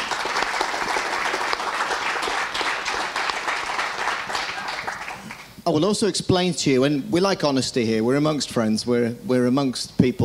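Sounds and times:
audience applause welcoming a jockey onto the stage: 0.0 - 5.5
speech: 5.7 - 10.2.

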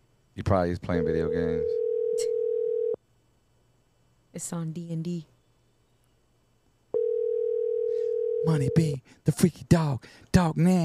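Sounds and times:
speech: 0.4 - 2.3, 4.4 - 5.3, 8.4 - 10.8
telephone ringback tone on an outgoing call: 1.2 - 3.0, 7.0 - 8.9.

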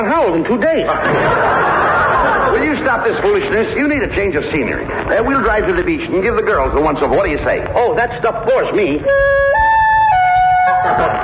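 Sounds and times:
speech: 0.0 - 1.7, 2.3 - 9.5, 10.8 - 11.2
laughter: 0.6 - 6.6, 10.2 - 11.2
horn playing music: 9.0 - 11.2.

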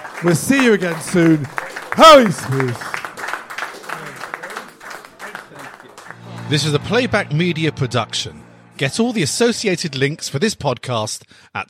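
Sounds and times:
voices cheering: 0.0 - 6.3
audience applause: 0.0 - 7.0
speech: 0.2 - 2.9, 6.5 - 11.6.

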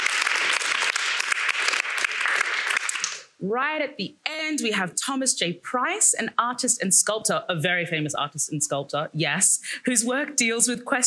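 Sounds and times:
audience round of applause: 0.0 - 3.2
speech: 3.4 - 11.0.

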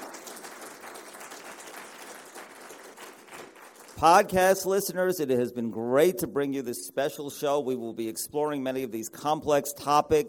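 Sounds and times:
studio audience applause: 0.0 - 4.3
speech: 4.0 - 10.2.

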